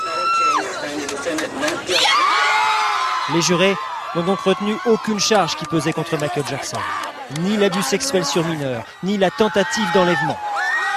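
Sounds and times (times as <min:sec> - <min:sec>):
crowd of women cheering outside the courthouse: 0:00.0 - 0:00.8, 0:01.9 - 0:10.9
speech: 0:01.3 - 0:02.3, 0:03.3 - 0:10.5.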